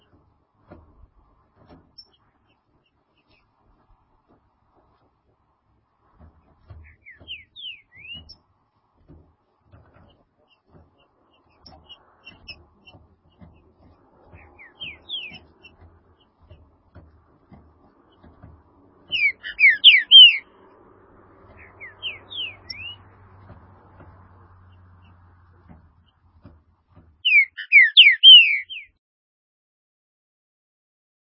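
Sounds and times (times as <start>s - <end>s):
low background rumble: 0.0s - 27.3s
Green-winged saltator singing slurred whistles: 6.8s - 8.4s, 14.3s - 15.8s, 19.1s - 20.5s, 21.5s - 23.1s, 27.2s - 29.0s.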